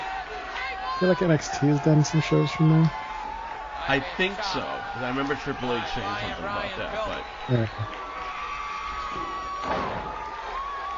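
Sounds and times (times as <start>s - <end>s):
wrestling crowd roaring and cheering: 0.0s - 10.9s
speech: 1.0s - 3.0s, 3.9s - 8.1s, 9.2s - 10.2s
slam or thud: 9.1s - 10.2s.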